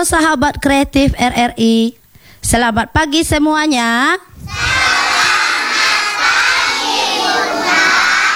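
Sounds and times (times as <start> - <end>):
speech: 0.0 - 4.7
kindergarten children from TK Nusa Indah Padang shouting and cheering in a radio studio: 4.4 - 8.3.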